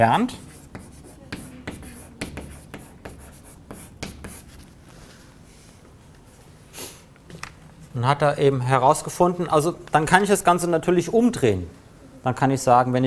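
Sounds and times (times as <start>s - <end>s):
speech: 0.0s - 0.4s, 8.0s - 13.0s
handwriting during an astronomy lecture: 0.4s - 4.7s.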